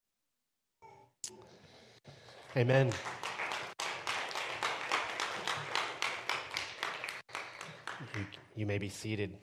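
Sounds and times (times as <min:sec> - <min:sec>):
audience cheering and clapping: 0:02.3 - 0:08.3
speech: 0:02.6 - 0:03.2, 0:08.2 - 0:09.4.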